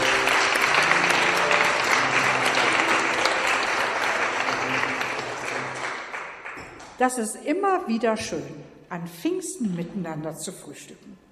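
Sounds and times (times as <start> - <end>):
audience applause: 0.0 - 6.9
speech: 7.0 - 11.3.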